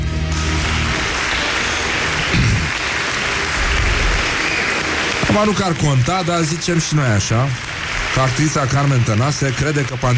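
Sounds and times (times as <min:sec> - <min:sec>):
crowd applause: 0:00.0 - 0:10.1
speech: 0:05.3 - 0:10.1.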